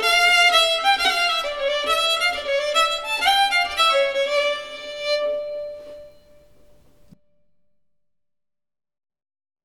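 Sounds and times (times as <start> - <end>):
bridal polska folk dance tune: 0.0 - 7.2.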